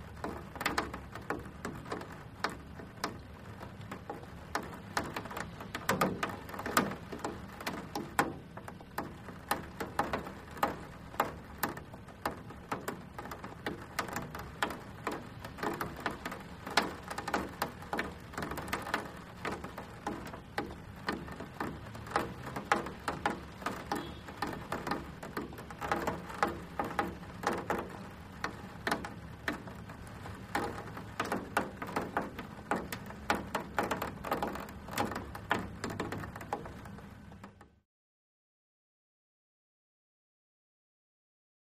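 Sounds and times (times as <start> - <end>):
water dribbles: 0.0 - 37.0
close rain drops on metal air conditioner outside window: 0.0 - 37.8
distant wet traffic in street below: 0.0 - 37.8.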